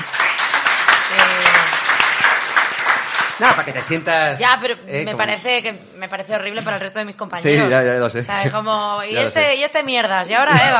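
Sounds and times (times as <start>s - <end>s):
audience applause: 0.0s - 4.3s
speech: 3.4s - 10.7s.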